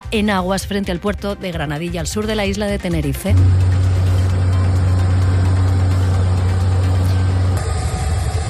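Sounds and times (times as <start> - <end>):
speech: 0.1 - 3.8
helicopters flying over an evacuation operation: 3.4 - 8.4.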